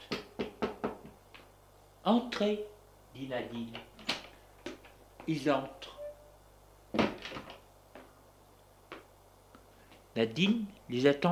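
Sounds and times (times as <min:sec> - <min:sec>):
knocking on a wooden door: 0:00.3 - 0:01.2
speech: 0:02.0 - 0:03.9, 0:05.3 - 0:05.9, 0:10.2 - 0:11.2.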